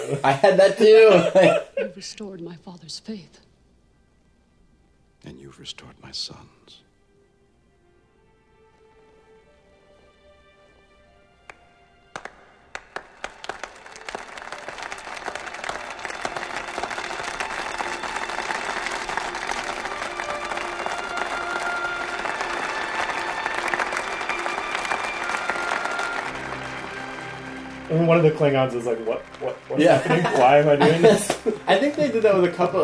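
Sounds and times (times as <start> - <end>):
laughter: 0.0 - 2.0, 29.4 - 32.8
speech: 0.1 - 3.5, 5.2 - 6.8, 28.0 - 32.8
slow clap building into applause: 11.4 - 32.8.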